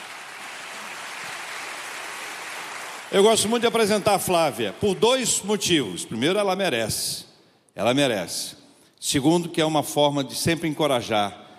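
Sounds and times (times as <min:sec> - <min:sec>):
audience applause: 0:00.0 - 0:04.0
speech: 0:03.1 - 0:11.4.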